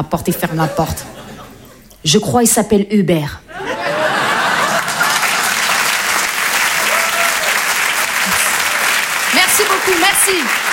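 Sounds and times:
speech: 0:00.0 - 0:01.2, 0:02.0 - 0:03.7, 0:09.8 - 0:10.6
laughter: 0:00.4 - 0:01.9, 0:03.5 - 0:06.2, 0:08.0 - 0:08.9
audience applause: 0:03.9 - 0:10.7.

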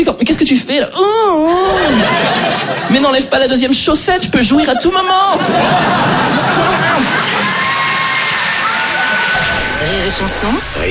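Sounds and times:
speech: 0:00.0 - 0:02.4, 0:03.0 - 0:07.6, 0:09.2 - 0:10.8
laughter: 0:01.5 - 0:03.3, 0:04.5 - 0:10.8
audience applause: 0:05.9 - 0:10.8.

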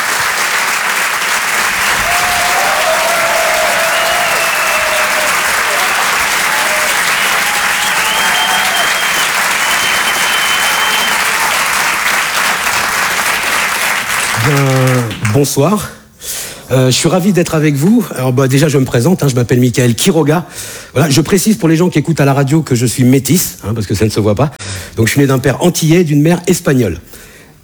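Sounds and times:
audience applause: 0:00.0 - 0:15.4
speech: 0:15.4 - 0:16.0, 0:16.7 - 0:27.2.

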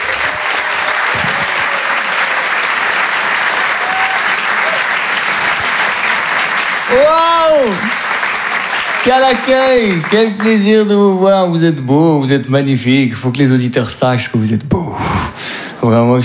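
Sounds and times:
cheering and whoops: 0:00.0 - 0:06.1, 0:06.9 - 0:09.3
audience applause: 0:00.0 - 0:13.5
speech: 0:06.9 - 0:08.0, 0:09.0 - 0:16.2.

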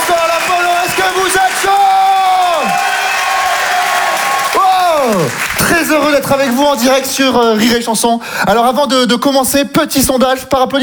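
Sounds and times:
loud whoops swooping downward in pitch: 0:00.0 - 0:05.6
audience cheering for a comedian at a live comedy show: 0:00.0 - 0:07.5
speech: 0:05.1 - 0:10.8.

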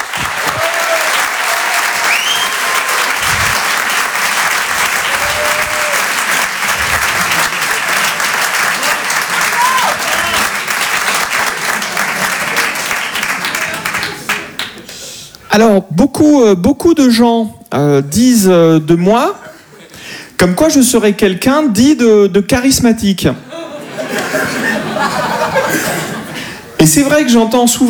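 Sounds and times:
audience clapping for a comedian at a stand-up show: 0:00.0 - 0:15.1
laughter: 0:02.0 - 0:14.6, 0:19.4 - 0:20.1, 0:23.4 - 0:27.3
speech: 0:15.6 - 0:19.4, 0:20.4 - 0:23.5, 0:26.8 - 0:27.8.

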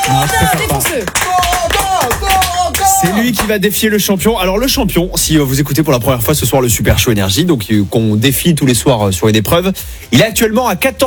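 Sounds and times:
audience applause: 0:00.0 - 0:03.4
speech: 0:00.1 - 0:02.4, 0:03.0 - 0:11.0.

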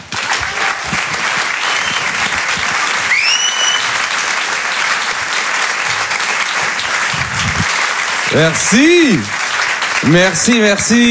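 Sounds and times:
audience applause: 0:00.0 - 0:11.0
whistles: 0:01.5 - 0:02.3, 0:03.1 - 0:04.1
speech: 0:08.4 - 0:09.4, 0:10.0 - 0:11.0.

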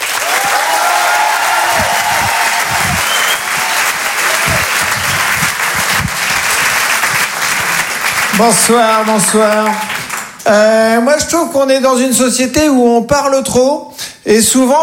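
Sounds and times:
faint cheers: 0:00.0 - 0:05.2
comedy club audience applauding a comedian: 0:00.0 - 0:10.4
speech: 0:08.4 - 0:14.8.

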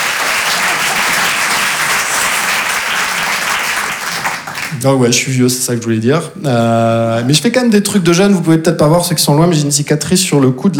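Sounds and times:
audience applause: 0:00.0 - 0:04.9
speech: 0:04.8 - 0:10.7.

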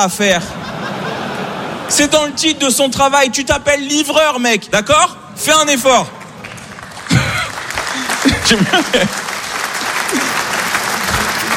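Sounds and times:
speech: 0:00.0 - 0:00.7, 0:01.9 - 0:06.2, 0:08.4 - 0:09.2
laughter: 0:00.3 - 0:02.9, 0:06.9 - 0:11.5
audience applause: 0:06.2 - 0:11.5.

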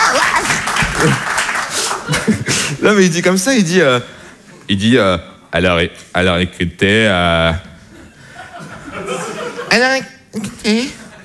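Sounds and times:
audience applause: 0:00.0 - 0:02.7
laughter: 0:00.0 - 0:02.8, 0:07.9 - 0:09.9
speech: 0:01.0 - 0:01.3, 0:02.8 - 0:07.7, 0:09.7 - 0:11.0.

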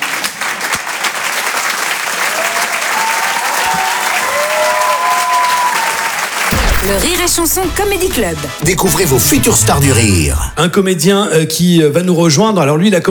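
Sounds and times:
audience clapping: 0:00.0 - 0:06.5
cheers: 0:00.0 - 0:06.6
speech: 0:06.9 - 0:13.1.

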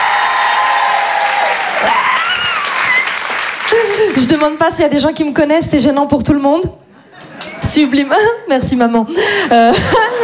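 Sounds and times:
shrill high cheers and whistles: 0:00.0 - 0:03.6
audience applause at a chanson stage show: 0:00.0 - 0:04.4
speech: 0:04.2 - 0:06.8, 0:07.7 - 0:10.2.

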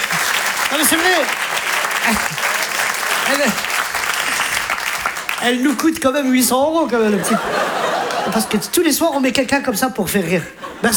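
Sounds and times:
audience applause: 0:00.0 - 0:08.7
laughter: 0:00.0 - 0:10.9
speech: 0:00.7 - 0:02.5, 0:03.3 - 0:03.7, 0:05.4 - 0:10.9.

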